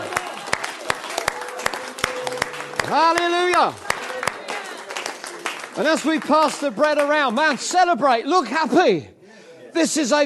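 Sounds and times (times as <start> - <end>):
audience clapping: 0.0 - 8.2
speech: 2.9 - 3.9, 5.8 - 10.2.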